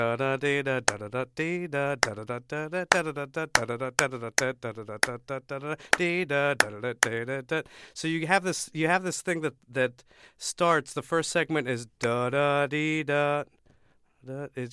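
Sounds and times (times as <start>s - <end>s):
speech: 0.0s - 13.6s, 14.2s - 14.7s
hand clapping a rhythm: 0.9s - 1.2s, 2.0s - 5.3s, 5.9s - 7.2s.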